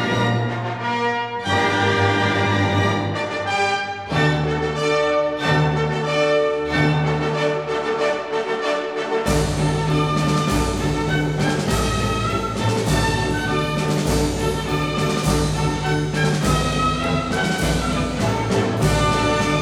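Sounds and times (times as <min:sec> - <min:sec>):
fanfare: 0:00.1 - 0:19.5.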